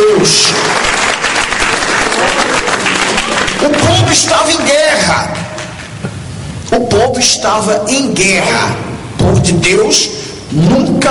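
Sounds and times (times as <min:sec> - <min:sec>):
congregation applause at a church service: 0:00.0 - 0:05.9
speech: 0:06.7 - 0:11.0.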